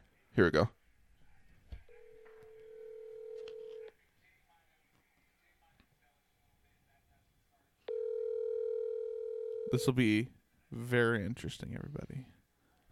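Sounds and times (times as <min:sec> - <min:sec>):
speech: 0:00.4 - 0:00.8, 0:09.7 - 0:12.4
phone dialing and ringing tone over a speakerphone: 0:01.9 - 0:03.9, 0:07.9 - 0:09.9.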